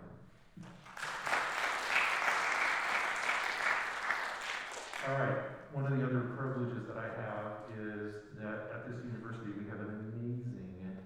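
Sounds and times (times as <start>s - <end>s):
audience applause: 0.6s - 5.2s
speech: 5.1s - 10.2s.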